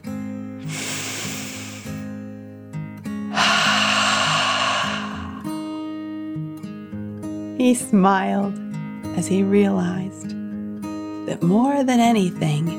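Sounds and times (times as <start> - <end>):
slow deep breath in and out: 0.6 - 2.0, 3.3 - 5.9
speech: 7.6 - 8.6, 9.2 - 10.3, 11.3 - 12.7.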